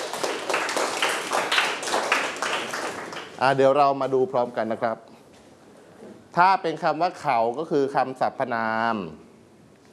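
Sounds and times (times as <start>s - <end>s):
group clapping: 0.0s - 3.8s
speech: 3.4s - 5.1s, 6.3s - 9.2s.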